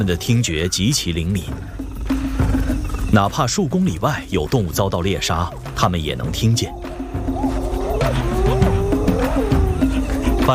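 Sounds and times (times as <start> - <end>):
spotted hyenas calling to summon pack: 0.0 - 1.2, 6.2 - 10.5
speech: 0.0 - 1.8, 3.1 - 7.4.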